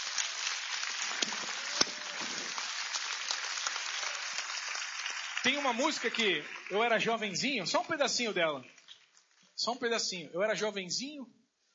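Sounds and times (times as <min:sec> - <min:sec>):
audience clapping: 0:00.0 - 0:09.5
speech: 0:05.4 - 0:08.8, 0:09.6 - 0:11.4.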